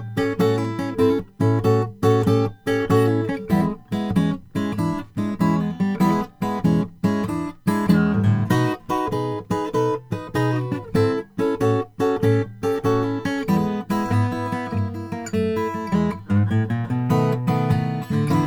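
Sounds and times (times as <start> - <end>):
Froggy Bottom H12 all koa deluxe acoustic guitar: 0.0 - 18.4.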